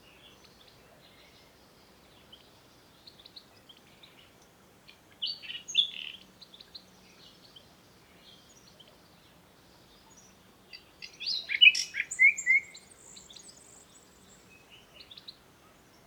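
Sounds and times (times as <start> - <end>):
common nightingale singing: 5.2 - 7.6, 10.1 - 15.4.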